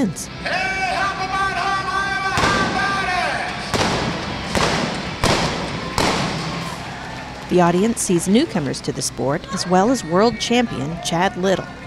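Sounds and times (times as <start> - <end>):
speech: 0.0 - 0.8, 7.5 - 11.8
steady tonal sound: 0.0 - 11.8
pistol shots fired from blanks: 2.4 - 3.0, 3.7 - 6.8.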